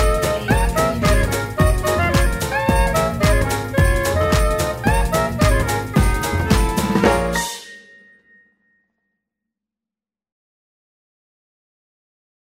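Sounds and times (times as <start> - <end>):
electro swing Christmas song: 0.0 - 7.7.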